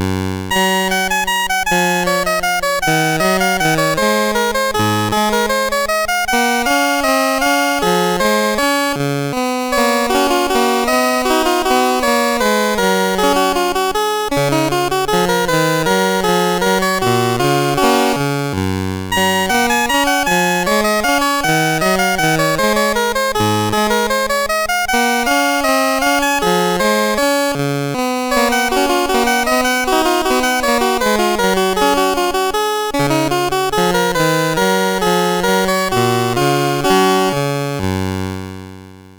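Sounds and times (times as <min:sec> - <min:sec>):
Commodore CSG8580R5 sound chip music programmed in BASIC: 0:00.0 - 0:39.0.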